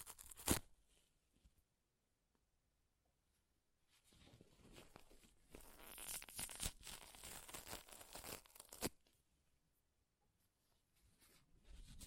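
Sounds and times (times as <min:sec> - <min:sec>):
paper ripping and tearing: 0:00.0 - 0:00.7, 0:05.6 - 0:09.0.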